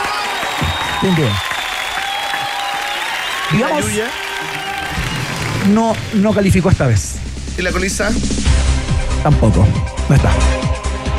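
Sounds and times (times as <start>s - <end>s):
audience applause: 0.0s - 6.5s
speech: 1.0s - 1.5s, 3.5s - 4.6s, 5.6s - 8.6s, 9.2s - 10.6s.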